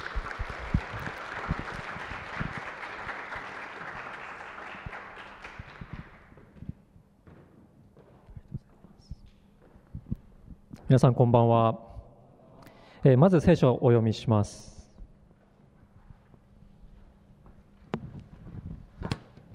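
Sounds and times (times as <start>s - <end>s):
audience applause: 0.0s - 6.4s
speech: 10.9s - 11.9s, 13.0s - 14.7s.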